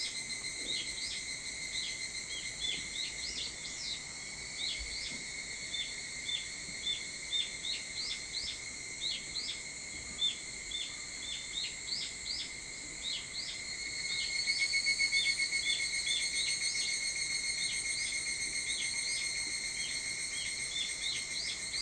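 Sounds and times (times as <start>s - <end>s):
evening cicada song: 0.0s - 21.8s.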